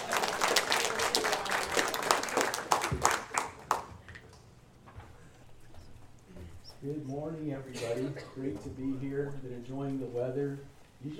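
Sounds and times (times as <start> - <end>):
audience applause: 0.0 - 4.4
speech: 7.1 - 11.1.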